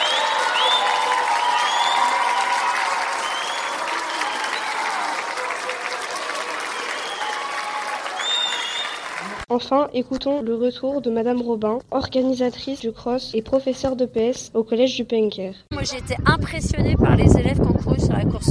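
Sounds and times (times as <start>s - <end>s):
students applauding winners in a gymnasium: 0.0s - 9.5s
speech: 9.6s - 18.4s.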